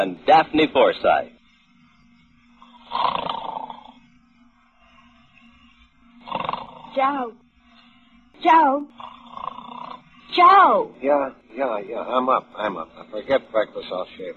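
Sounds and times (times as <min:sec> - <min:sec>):
speech: 0:00.0 - 0:01.4, 0:06.9 - 0:07.4, 0:08.4 - 0:09.2, 0:10.3 - 0:14.3
loud snoring: 0:02.6 - 0:04.1, 0:06.2 - 0:07.3, 0:09.0 - 0:10.3.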